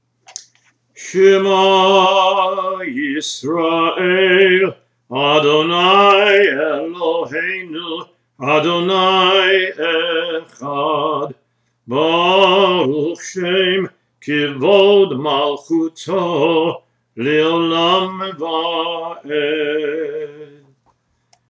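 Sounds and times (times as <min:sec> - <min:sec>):
traditional prayer chant: 0:01.0 - 0:20.8.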